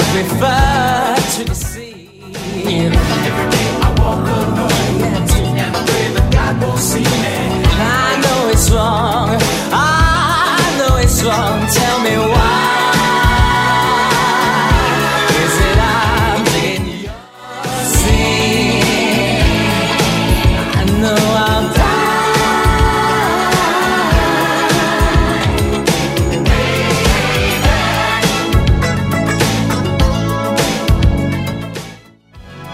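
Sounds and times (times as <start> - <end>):
80s-style music beat at 102 bpm: 0.0 - 32.7.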